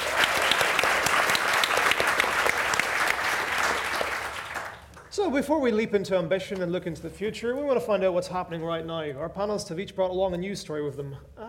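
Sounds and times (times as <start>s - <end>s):
audience applause at the Science Gallery in Dublin: 0.0s - 5.1s
speech: 5.2s - 11.4s.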